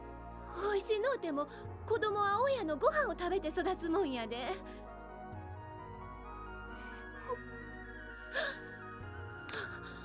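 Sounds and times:
soft sustained music: 0:00.0 - 0:10.0
speech: 0:00.8 - 0:04.9
girl crying: 0:06.8 - 0:07.4, 0:08.4 - 0:08.6, 0:09.5 - 0:10.0.

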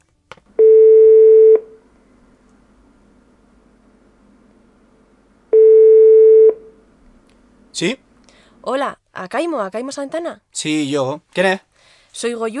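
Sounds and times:
telephone line ringing tone while calling an exchange student abroad: 0:00.6 - 0:01.8, 0:05.5 - 0:06.6
speech: 0:07.8 - 0:08.0, 0:08.6 - 0:12.5.

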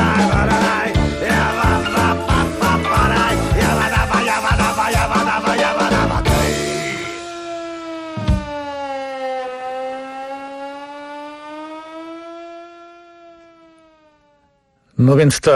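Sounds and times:
voice imitating a siren with the mouth in a song: 0:00.0 - 0:12.1.

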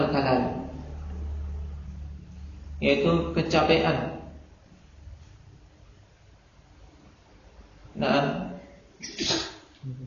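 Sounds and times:
speech: 0:00.1 - 0:00.7, 0:02.8 - 0:04.2
person sneezing: 0:09.0 - 0:09.7.

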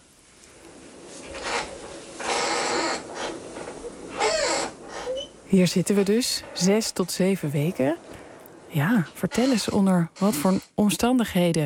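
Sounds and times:
door of a researcher's hut on the tundra scraping open: 0:01.1 - 0:08.4, 0:09.0 - 0:10.8
high-pitched creak of the hut door hinge: 0:01.3 - 0:05.4, 0:09.2 - 0:10.8
speech: 0:05.5 - 0:08.1, 0:08.7 - 0:11.6.

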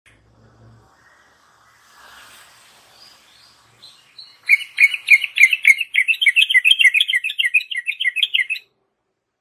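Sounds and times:
yellow-vented bulbul chattering warbled song: 0:03.8 - 0:08.7.

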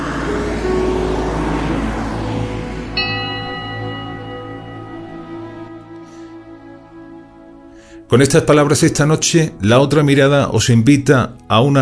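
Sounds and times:
city bus engine rumbling with a rising whine: 0:00.0 - 0:07.7
sustained ringing tone with layered overtones: 0:00.0 - 0:07.7
speech: 0:08.1 - 0:11.7.

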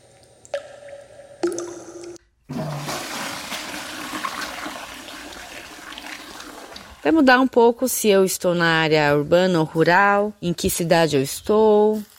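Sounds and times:
toilet flushing: 0:01.4 - 0:07.1
speech: 0:07.0 - 0:12.1.

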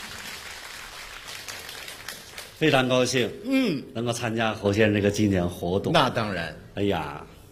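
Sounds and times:
sparse scattered applause from the audience at a comedy memorial performance: 0:00.0 - 0:02.8
speech: 0:02.6 - 0:07.3.

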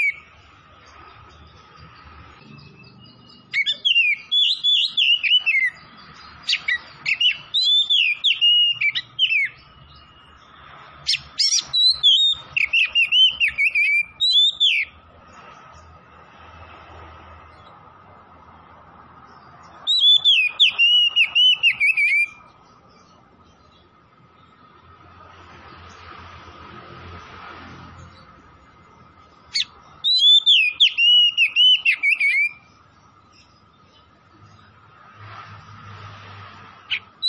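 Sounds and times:
Oriental magpie-robin song: 0:00.0 - 0:15.0, 0:19.3 - 0:23.9, 0:29.2 - 0:34.6, 0:36.9 - 0:37.2.

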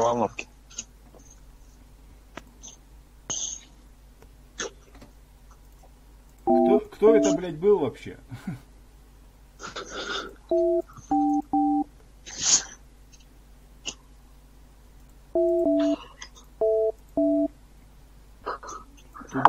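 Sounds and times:
speech: 0:00.0 - 0:00.9, 0:07.0 - 0:08.7
telephone keypad tones of a phone call being dialed: 0:06.5 - 0:07.4, 0:10.5 - 0:11.8, 0:15.4 - 0:16.0, 0:16.6 - 0:17.5.

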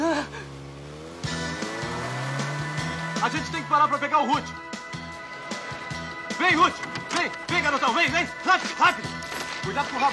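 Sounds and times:
car engine driving away in a dubbed film scene: 0:00.0 - 0:07.4
speech: 0:03.2 - 0:04.7, 0:06.4 - 0:10.1.

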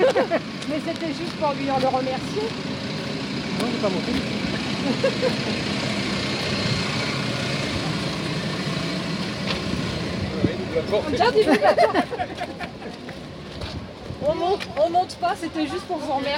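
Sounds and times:
laughter: 0:00.0 - 0:00.6, 0:04.6 - 0:05.9, 0:11.0 - 0:13.2
bus idling at a stop: 0:00.0 - 0:16.3
speech: 0:00.2 - 0:02.8, 0:03.6 - 0:05.9, 0:10.8 - 0:13.1, 0:14.2 - 0:16.3.

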